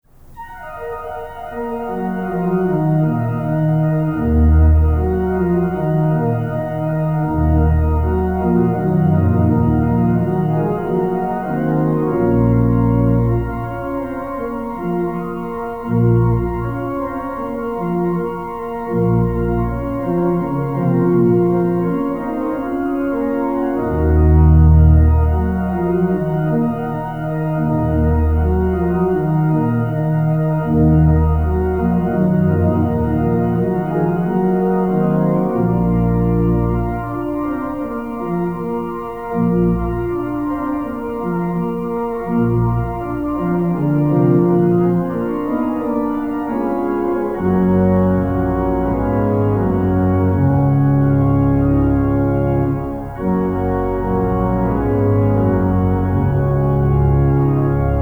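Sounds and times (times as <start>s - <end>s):
organ toccata: 0.1s - 58.0s.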